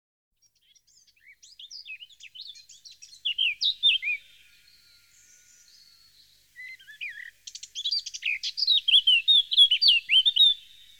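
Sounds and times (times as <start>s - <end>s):
Eurasian blackcap song of quick varied warbling and rich fluty whistles: 0.6s - 4.2s, 6.6s - 10.9s.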